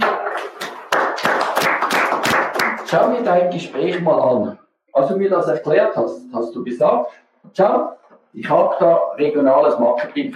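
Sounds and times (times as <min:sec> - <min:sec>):
applause: 0:00.0 - 0:03.3
speech: 0:02.9 - 0:10.3.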